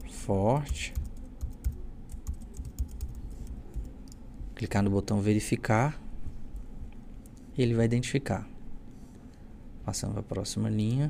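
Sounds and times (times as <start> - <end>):
speech: 0.3 - 1.0, 4.6 - 6.0, 7.6 - 8.5, 9.9 - 11.0
typing a password on a computer keyboard: 0.6 - 4.2.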